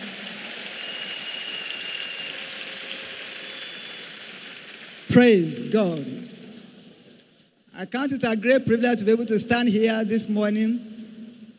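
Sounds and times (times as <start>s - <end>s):
crowd applauding: 0.0s - 6.8s
speech: 5.1s - 6.2s, 7.8s - 10.9s.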